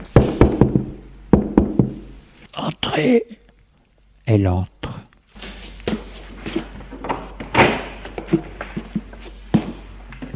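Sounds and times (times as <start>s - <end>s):
knocking on a door: 0.2s - 2.0s
speech: 2.6s - 3.4s, 4.3s - 4.7s.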